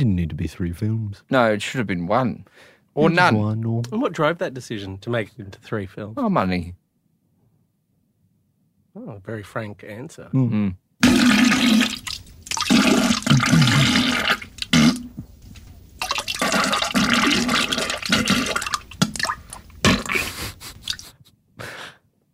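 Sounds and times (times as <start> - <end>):
speech: 0.0 - 6.8, 9.0 - 12.0
toilet flushing: 11.0 - 15.1, 16.0 - 20.2.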